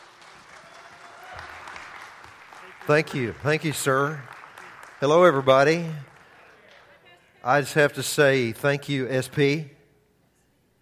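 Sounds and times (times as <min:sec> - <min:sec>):
church audience at Abiding Word Church applauding to welcome speakers: 0:00.0 - 0:07.1
speech: 0:02.9 - 0:04.4, 0:05.0 - 0:06.1, 0:07.4 - 0:09.8.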